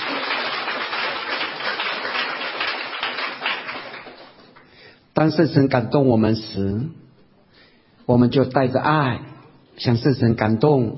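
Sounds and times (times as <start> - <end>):
audience applause: 0.0 - 4.7
speech: 5.2 - 7.0, 8.1 - 10.9.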